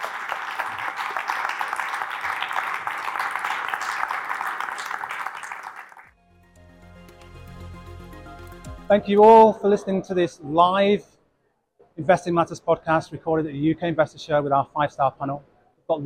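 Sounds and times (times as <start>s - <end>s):
audience applause: 0.0s - 6.1s
quiet music with a low pulsing tone: 6.1s - 11.1s
speech: 8.9s - 11.1s, 12.0s - 16.0s.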